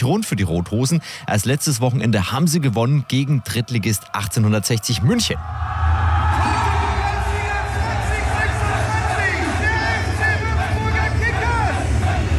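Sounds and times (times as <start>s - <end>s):
speech: 0.0s - 5.8s
crowd cheering: 2.9s - 12.3s.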